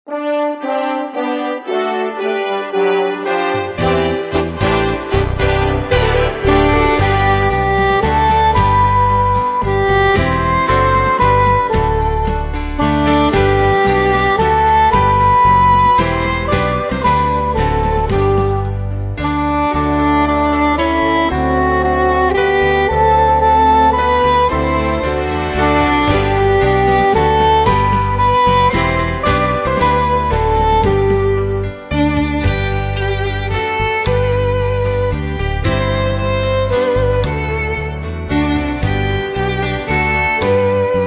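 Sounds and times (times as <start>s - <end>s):
instrumental hymns: 0.1s - 41.0s.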